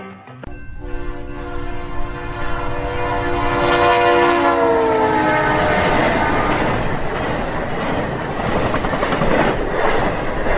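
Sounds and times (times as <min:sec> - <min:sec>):
diesel locomotive whistle: 0:00.5 - 0:07.0
passing train rumble and clatter: 0:00.5 - 0:10.5.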